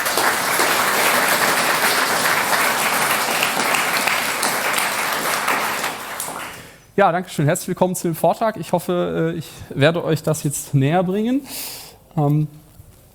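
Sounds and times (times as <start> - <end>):
audience applause: 0.0 - 6.8
speech: 7.0 - 12.6.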